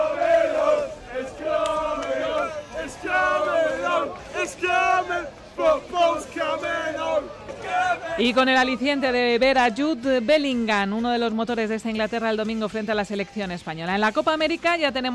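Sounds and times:
crowd of football fans singing: 0.0 - 9.2
speech: 8.2 - 15.1.

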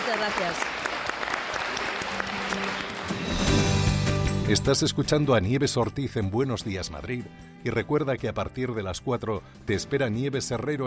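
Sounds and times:
studio audience applause: 0.0 - 3.8
speech: 0.1 - 0.9, 4.5 - 10.8.

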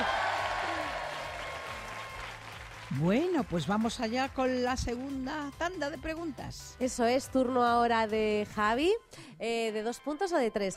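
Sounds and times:
audience applause: 0.0 - 3.6
speech: 2.9 - 10.7.

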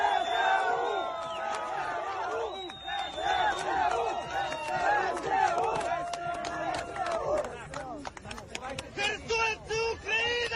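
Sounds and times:
people shouting: 0.0 - 7.4
large crowd chanting a slogan in jubilant unison: 0.0 - 7.5
sharp claps: 1.0 - 9.2, 10.2 - 10.5.

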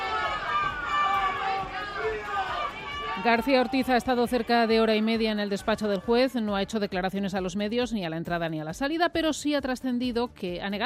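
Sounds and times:
crowd booing: 0.0 - 6.6
speech: 3.2 - 10.8.

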